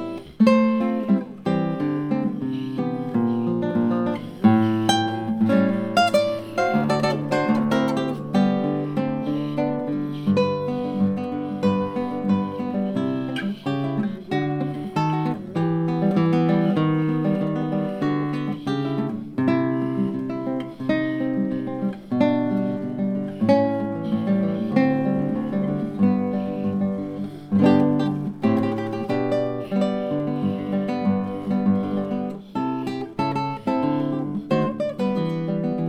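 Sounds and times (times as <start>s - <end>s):
classical guitarist playing: 0.0s - 35.8s.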